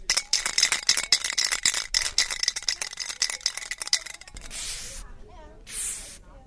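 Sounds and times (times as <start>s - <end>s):
spray paint can shaken with mixing ball clacking: 0.0s - 5.0s, 5.7s - 6.2s
spray paint can spraying: 4.0s - 5.1s, 5.7s - 6.2s.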